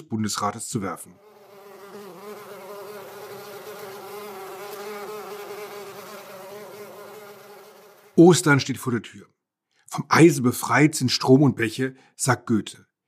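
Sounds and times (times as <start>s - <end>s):
speech: 0.0s - 1.3s, 8.2s - 9.3s, 9.9s - 12.9s
insects buzzing and humming: 1.2s - 8.2s.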